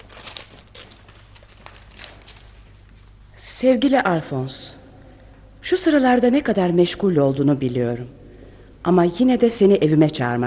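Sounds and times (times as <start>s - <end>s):
paper crinkling and rustling as a letter is opened: 0.0s - 3.2s
speech: 3.6s - 4.8s, 5.7s - 8.2s, 8.8s - 10.4s.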